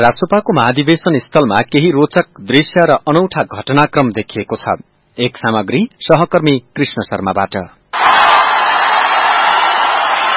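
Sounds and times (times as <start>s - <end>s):
speech: 0.0s - 8.1s
crowd hooting at a party convention as politicians arrive: 8.0s - 10.3s.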